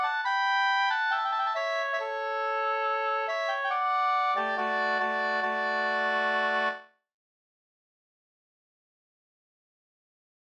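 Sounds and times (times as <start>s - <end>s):
wedding march music: 0.0s - 6.8s.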